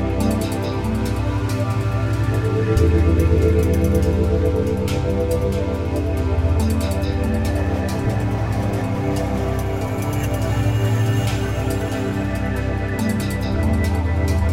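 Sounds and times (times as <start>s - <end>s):
energizing ambience: 0.0s - 14.5s.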